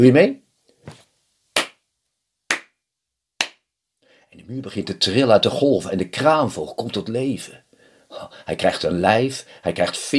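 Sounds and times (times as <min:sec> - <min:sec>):
speech: 0:00.0 - 0:01.0, 0:04.4 - 0:10.1
faint shuffle: 0:00.6 - 0:01.2
hand claps: 0:01.6 - 0:01.8, 0:02.5 - 0:02.8, 0:03.4 - 0:03.7.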